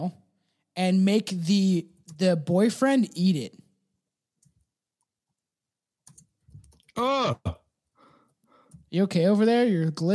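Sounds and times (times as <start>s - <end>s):
speech: 0.0s - 0.2s, 0.8s - 3.6s, 7.0s - 7.6s, 8.9s - 10.1s
typing on a computer keyboard: 6.0s - 6.9s.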